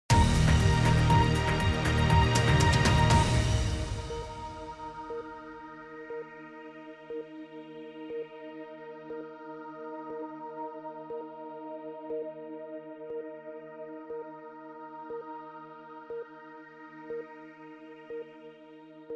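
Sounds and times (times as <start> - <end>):
quarter hour music sting: 0.1 - 5.6.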